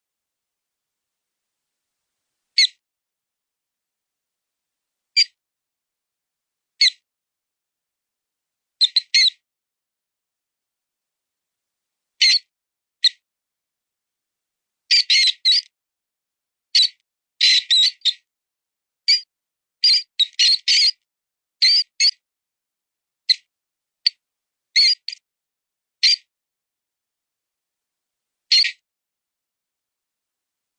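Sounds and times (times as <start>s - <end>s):
mouse sound: 2.6s - 2.8s, 5.2s - 5.4s, 6.8s - 7.1s, 8.8s - 9.4s, 12.2s - 13.3s, 14.9s - 15.8s, 16.7s - 18.3s, 19.1s - 22.2s, 23.2s - 24.2s, 24.8s - 25.2s, 26.0s - 26.3s, 28.5s - 28.8s.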